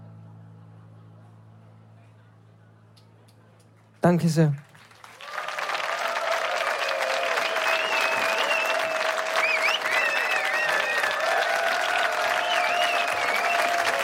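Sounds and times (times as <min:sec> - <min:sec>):
speech: 0:04.0 - 0:04.7
audience applause: 0:04.1 - 0:14.0
faint cheers: 0:05.1 - 0:14.0
whistles: 0:07.1 - 0:14.0.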